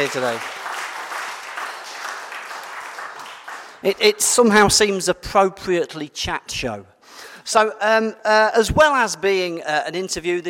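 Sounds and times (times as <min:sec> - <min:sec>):
speech: 0:00.0 - 0:00.6, 0:03.8 - 0:10.4
audience giving a round of applause: 0:00.0 - 0:04.0.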